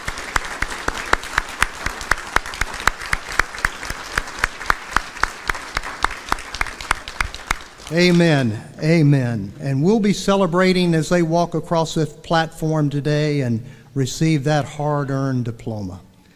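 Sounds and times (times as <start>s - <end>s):
audience applause: 0.0s - 8.3s
speech: 7.9s - 16.1s.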